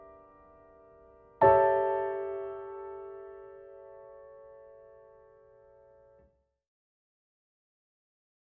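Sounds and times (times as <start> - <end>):
piano: 0.0 - 6.4.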